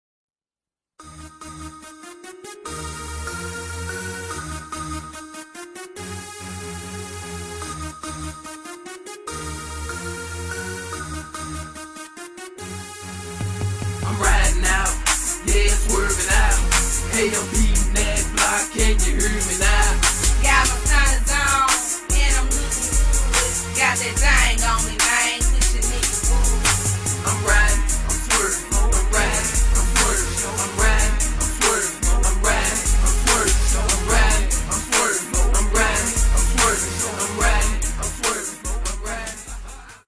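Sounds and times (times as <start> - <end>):
female rapper in underground hip hop: 14.2 - 39.7.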